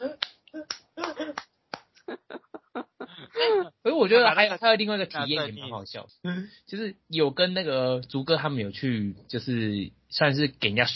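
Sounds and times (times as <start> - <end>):
hand clapping: 0.2 - 2.0
speech: 3.4 - 10.9.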